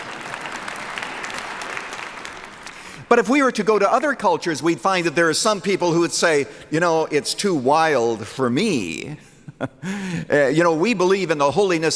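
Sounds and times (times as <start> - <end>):
Moody Church congregation clapping: 0.0 - 4.2
speech: 3.1 - 11.9.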